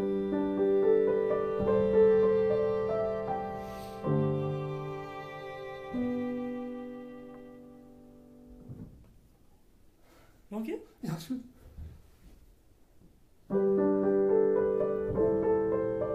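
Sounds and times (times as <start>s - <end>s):
lullaby played on violin and piano: 0.0s - 8.8s, 13.5s - 16.1s.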